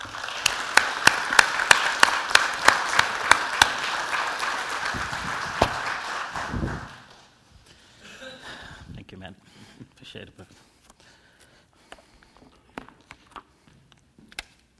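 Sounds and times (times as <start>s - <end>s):
sharp evenly spaced claps: 0.0s - 7.3s
audience applause welcoming a speaker to the stage: 0.0s - 7.4s.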